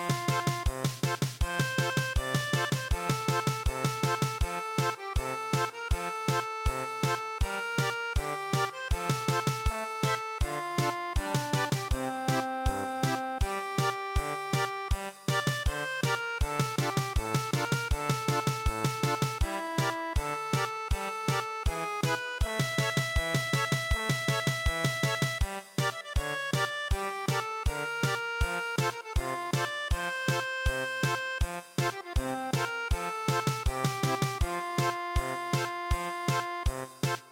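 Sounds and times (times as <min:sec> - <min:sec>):
German polka music: 0:00.0 - 0:37.3.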